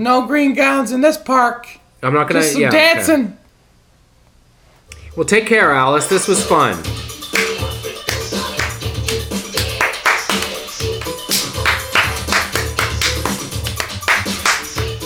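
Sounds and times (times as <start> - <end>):
speech: 0.0 - 3.4, 5.2 - 7.1
rhythmic handclaps in a clapping sound effect track: 6.1 - 15.0.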